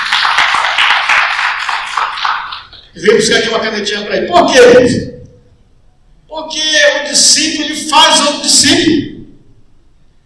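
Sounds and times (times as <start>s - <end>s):
audience clapping hands: 0.0s - 2.9s
speech: 3.0s - 5.1s, 6.4s - 9.1s.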